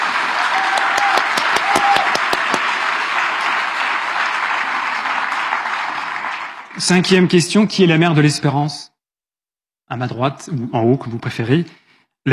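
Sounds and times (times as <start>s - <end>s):
audience applauding loudly: 0.0s - 7.5s
speech: 6.8s - 8.9s, 9.9s - 12.3s.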